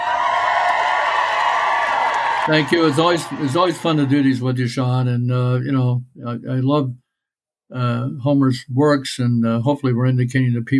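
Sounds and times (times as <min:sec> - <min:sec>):
audience applause: 0:00.0 - 0:04.7
speech: 0:02.4 - 0:07.0, 0:07.7 - 0:10.7.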